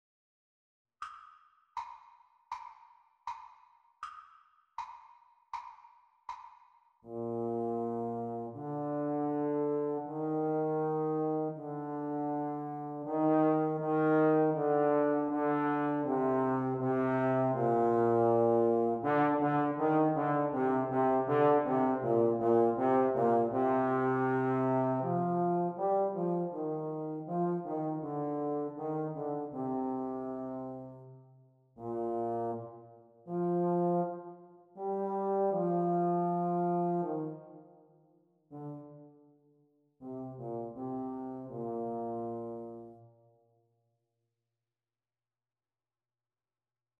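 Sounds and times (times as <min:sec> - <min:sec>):
trombone playalong: 0:07.1 - 0:31.1, 0:31.8 - 0:37.5, 0:38.5 - 0:39.0, 0:40.0 - 0:43.0.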